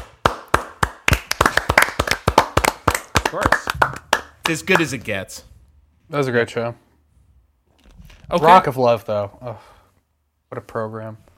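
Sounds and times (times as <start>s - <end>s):
round of applause from a few people: 0.0s - 5.0s
speech: 3.3s - 3.7s, 4.5s - 5.5s, 6.1s - 6.8s, 8.3s - 9.7s, 10.5s - 11.2s.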